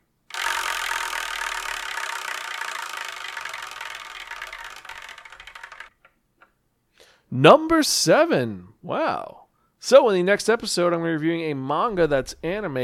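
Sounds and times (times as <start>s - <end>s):
spinning prize wheel: 0.3s - 6.0s
speech: 7.3s - 12.8s.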